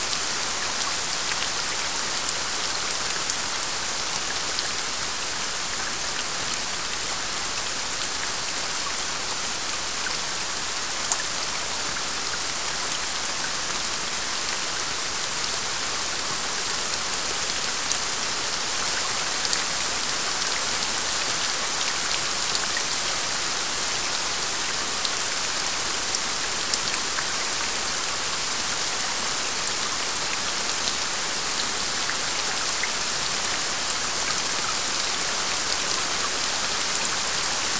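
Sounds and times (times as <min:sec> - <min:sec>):
strong steady rain: 0:00.0 - 0:37.7.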